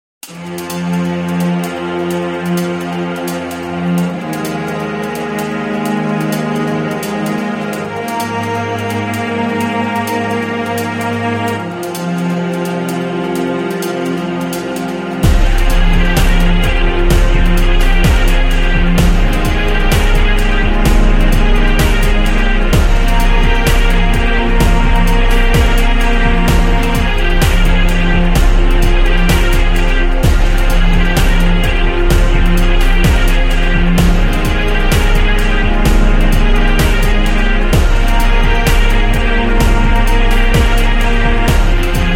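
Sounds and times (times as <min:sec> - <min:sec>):
violin: 0:00.2 - 0:42.1.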